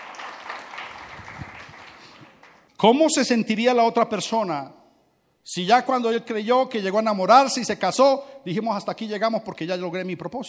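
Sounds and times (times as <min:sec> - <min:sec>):
audience applause: 0:00.0 - 0:02.6
speech: 0:02.8 - 0:04.8, 0:05.5 - 0:10.4.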